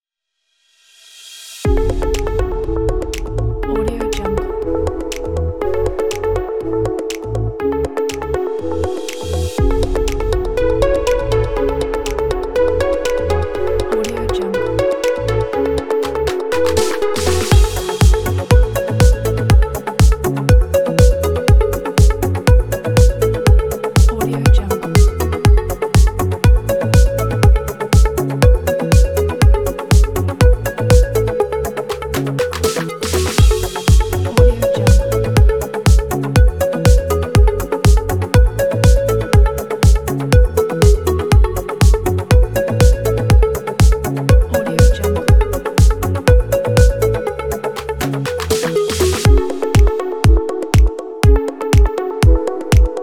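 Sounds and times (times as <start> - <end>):
deep house music: 1.6 - 53.0.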